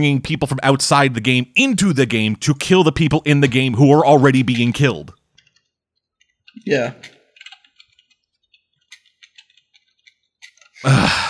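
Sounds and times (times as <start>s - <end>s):
speech: 0.0s - 5.2s, 6.6s - 7.2s, 10.8s - 11.2s
typing a search into a computer: 7.4s - 10.8s.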